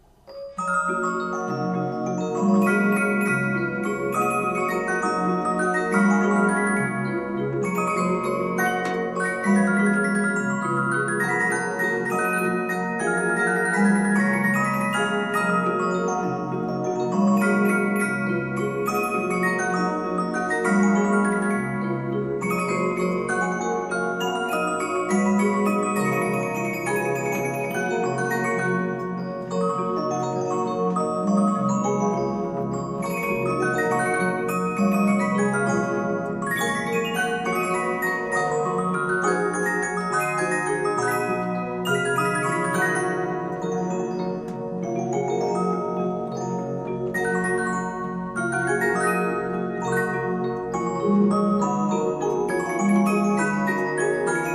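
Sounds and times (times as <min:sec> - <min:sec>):
music box: 0:00.0 - 0:54.5.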